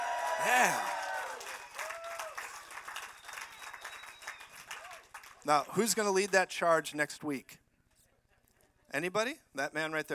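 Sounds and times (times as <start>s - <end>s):
crowd roaring and shouting: 0.0s - 2.3s
clapping: 0.0s - 6.4s
speech: 0.4s - 1.0s, 5.4s - 7.6s, 8.9s - 10.1s.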